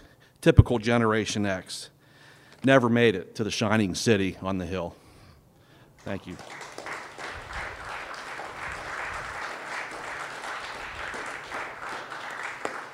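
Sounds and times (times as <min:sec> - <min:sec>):
speech: 0:00.4 - 0:01.9, 0:02.6 - 0:05.0, 0:06.0 - 0:06.6
audience applause: 0:06.2 - 0:12.9.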